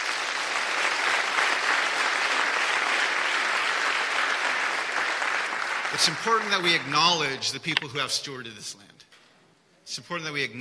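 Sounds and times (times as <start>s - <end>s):
audience applause: 0.0s - 7.4s
speech: 5.9s - 9.0s, 9.9s - 10.5s.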